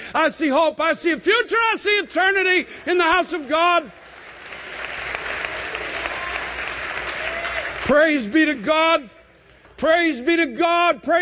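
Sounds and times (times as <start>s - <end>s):
speech: 0.1s - 4.0s, 7.9s - 9.2s, 9.8s - 11.1s
audience clapping: 2.8s - 9.0s.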